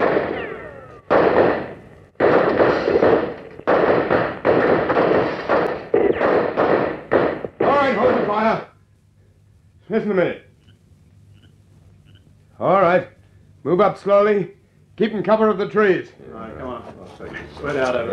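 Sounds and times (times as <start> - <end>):
gunshots fired at a man fleeing into the bush: 0.0 - 8.6
speech: 9.9 - 10.4, 12.6 - 18.1.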